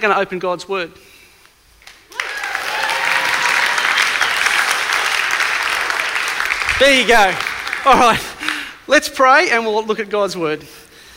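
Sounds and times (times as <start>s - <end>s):
speech: 0.0s - 1.1s, 6.8s - 10.8s
audience applause: 1.8s - 8.8s.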